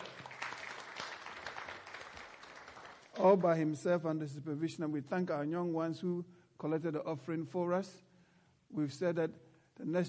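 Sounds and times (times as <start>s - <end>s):
audience clapping: 0.0s - 3.6s
speech: 3.2s - 8.1s, 8.7s - 10.0s.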